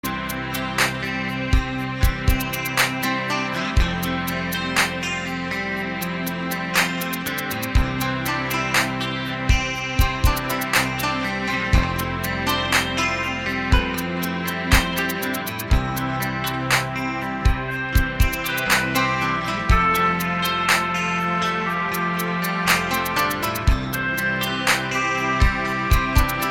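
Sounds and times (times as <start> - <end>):
instrumental ringtone music: 0.0 - 26.4.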